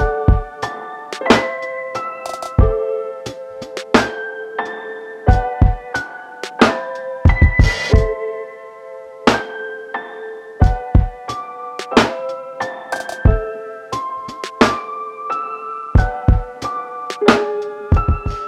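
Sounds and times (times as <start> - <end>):
chill lofi hip hop beat: 0.0 - 4.4, 5.3 - 8.2, 10.6 - 15.0, 16.0 - 18.4.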